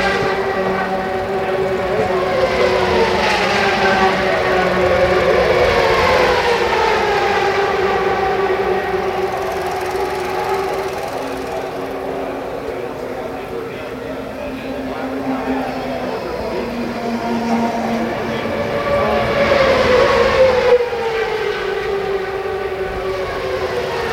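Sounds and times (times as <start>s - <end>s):
steady whine: 0.0s - 19.2s
IndyCar race cars with turbocharged V8s passing at Fontana: 0.0s - 24.1s.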